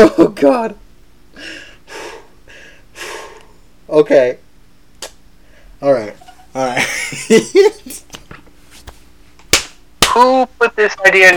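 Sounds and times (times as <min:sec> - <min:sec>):
speech: 0:00.0 - 0:00.8, 0:03.9 - 0:04.4, 0:05.8 - 0:08.2, 0:10.1 - 0:11.3
deep breaths before speaking: 0:01.3 - 0:03.6, 0:05.4 - 0:05.8
laughter: 0:06.2 - 0:08.0.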